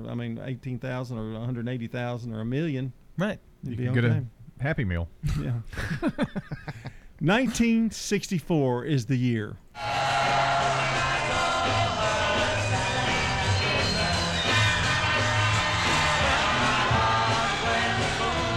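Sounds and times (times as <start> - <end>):
speech: 0.0 - 10.1
band playing rhythmic low music: 9.8 - 18.5
concert crowd screaming: 9.8 - 18.5.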